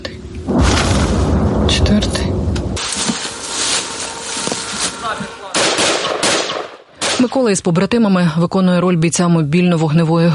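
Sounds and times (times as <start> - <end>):
guided aerial bomb explosions: 0.4 - 6.9
speech: 7.2 - 10.3.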